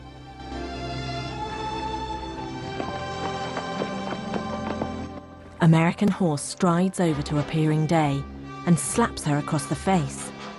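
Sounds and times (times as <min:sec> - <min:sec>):
sustained tonal background: 0:00.0 - 0:10.5
horse hooves clip-clopping as a rider sets off: 0:02.1 - 0:06.3
speech: 0:05.6 - 0:10.3.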